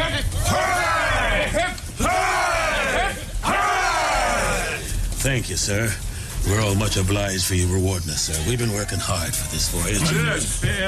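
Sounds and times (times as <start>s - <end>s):
crew of men cheering hip-hip-hooray: 0.2s - 5.0s
speech: 5.2s - 10.8s.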